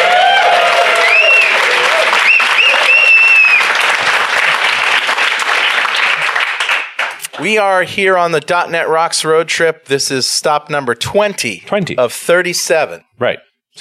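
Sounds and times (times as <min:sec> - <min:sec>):
shrill whistles from the audience: 0:00.0 - 0:03.8
audience applause from a North Carolina crowd: 0:00.0 - 0:07.6
speech: 0:07.4 - 0:13.8.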